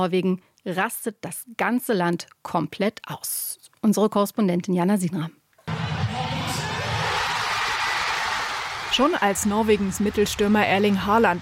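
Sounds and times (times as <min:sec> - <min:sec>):
speech: 0:00.0 - 0:05.4, 0:09.0 - 0:11.4
football fans cheering in city centre of Oslo: 0:05.7 - 0:11.4.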